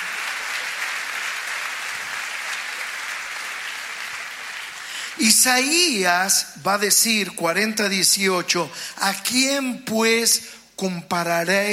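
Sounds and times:
audience applause: 0.0s - 5.4s
speech: 5.2s - 11.7s.

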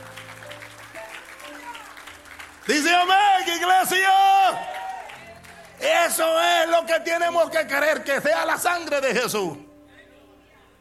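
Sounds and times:
audience applause: 0.0s - 6.0s
speech: 2.6s - 4.8s, 5.8s - 9.7s.

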